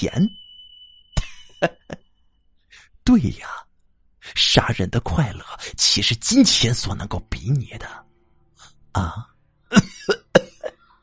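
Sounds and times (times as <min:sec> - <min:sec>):
speech: 0:00.0 - 0:00.4, 0:01.6 - 0:02.0, 0:03.1 - 0:03.7, 0:04.3 - 0:08.1, 0:09.0 - 0:10.2
person coughing: 0:09.7 - 0:11.0.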